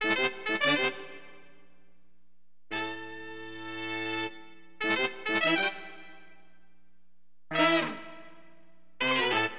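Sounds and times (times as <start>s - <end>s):
funk horn wind instrument: 0.0s - 1.5s, 2.7s - 6.3s, 7.5s - 9.5s.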